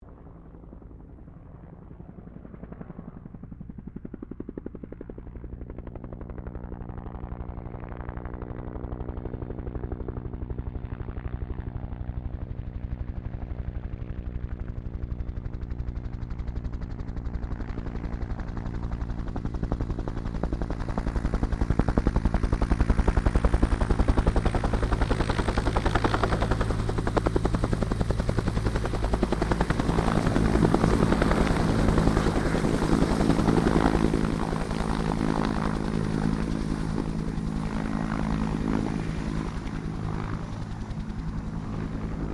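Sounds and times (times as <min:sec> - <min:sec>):
Bell UH-1 Iroquois helicopter hovering and passing: 0:00.0 - 0:42.3.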